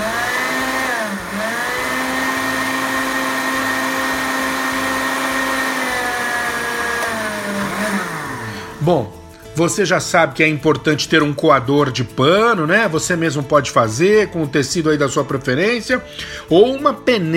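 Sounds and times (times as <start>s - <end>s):
blender blending soaked flaxseed: 0.0s - 9.0s
speech: 8.8s - 17.3s.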